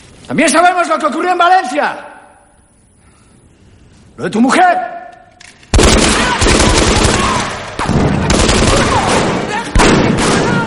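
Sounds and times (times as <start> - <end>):
speech: 0.3 - 2.1, 4.2 - 5.0
machine gun fire from a soldier on a raised parapet: 5.7 - 10.6.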